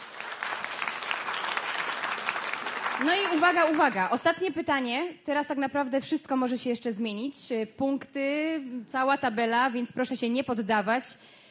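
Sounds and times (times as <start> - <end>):
festival audience applause for a film crew member: 0.0 - 4.1
speech: 3.0 - 11.4.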